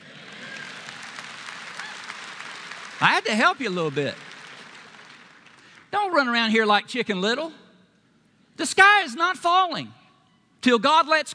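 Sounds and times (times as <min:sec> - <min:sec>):
audience clapping: 0:00.0 - 0:05.9
speech: 0:03.0 - 0:04.2, 0:06.0 - 0:07.6, 0:08.6 - 0:10.0, 0:10.6 - 0:11.3.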